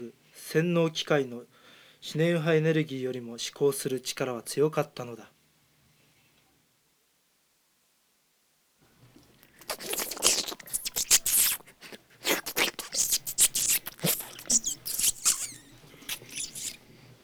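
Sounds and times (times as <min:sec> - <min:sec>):
speech: 0:00.0 - 0:05.3
young rat scurrying: 0:09.6 - 0:16.8.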